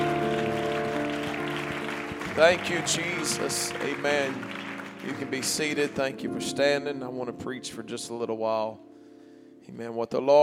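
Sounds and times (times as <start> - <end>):
audience clapping hands: 0.0 - 6.3
speech: 2.4 - 8.9, 9.6 - 10.4.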